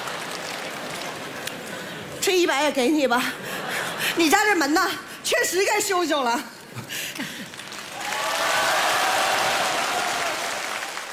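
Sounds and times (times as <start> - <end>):
audience applause: 0.0 - 1.4, 7.4 - 11.1
speech: 2.3 - 3.6, 4.2 - 6.5.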